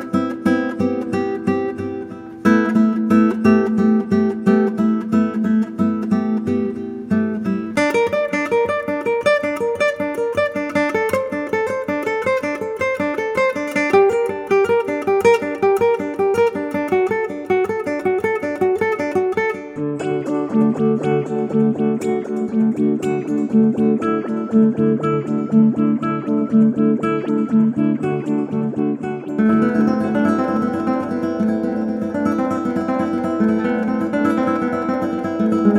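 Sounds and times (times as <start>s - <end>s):
nylon string guitar arpeggios: 0.0s - 35.7s.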